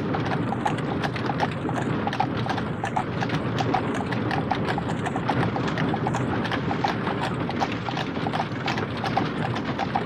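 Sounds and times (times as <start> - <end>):
horse-drawn wagon in medieval fantasy ambience: 0.0 - 10.0.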